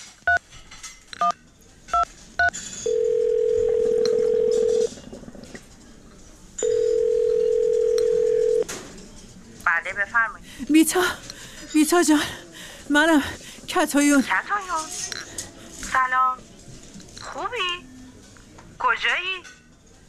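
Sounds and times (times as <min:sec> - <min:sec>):
faint murmur: 0:00.8 - 0:20.0
long steady telephone tones: 0:02.4 - 0:04.9, 0:06.6 - 0:08.7
speech: 0:10.8 - 0:15.0.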